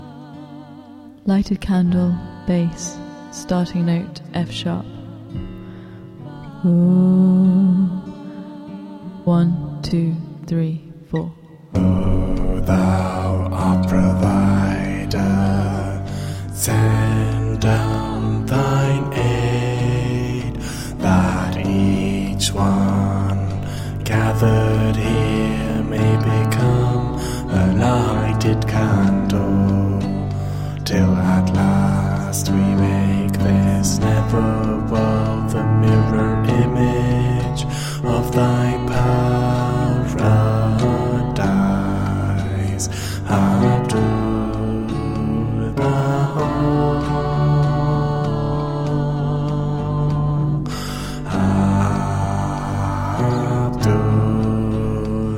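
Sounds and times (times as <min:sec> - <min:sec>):
choral music: 0:00.0 - 0:55.3
bass: 0:09.3 - 0:55.3.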